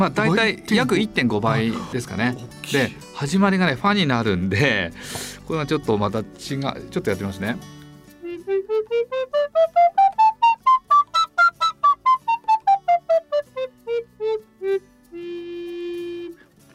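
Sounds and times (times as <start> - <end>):
speech: 0.0 - 7.8
alto recorder playing: 8.2 - 16.4.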